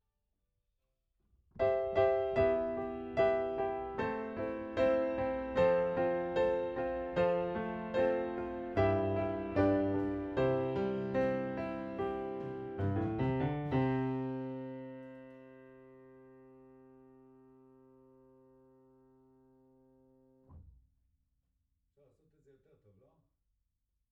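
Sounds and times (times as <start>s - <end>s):
piano: 1.6s - 20.8s.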